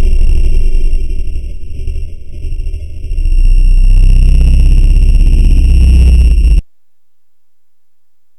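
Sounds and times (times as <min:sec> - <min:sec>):
UFO hovering and taking off: 0:00.0 - 0:06.6.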